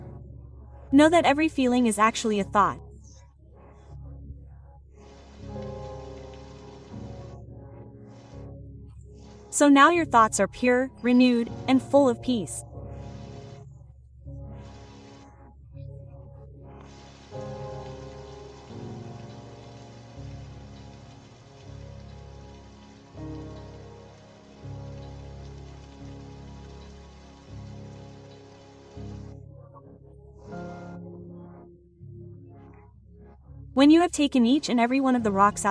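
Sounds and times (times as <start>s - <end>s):
speech: 0.9s - 2.8s, 9.6s - 12.7s, 33.9s - 35.6s
rain falling on a surface: 5.1s - 7.4s, 12.9s - 13.6s, 14.6s - 15.3s, 16.8s - 29.4s.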